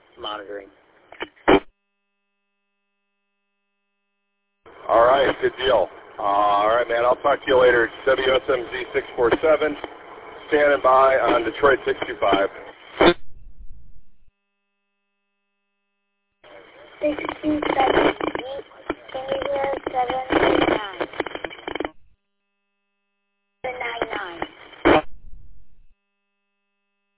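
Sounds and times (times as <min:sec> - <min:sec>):
radio transmission with heavy static: 0:00.0 - 0:01.7, 0:04.7 - 0:14.3, 0:16.4 - 0:22.2, 0:23.6 - 0:26.0
speech: 0:00.2 - 0:00.8, 0:04.9 - 0:13.2.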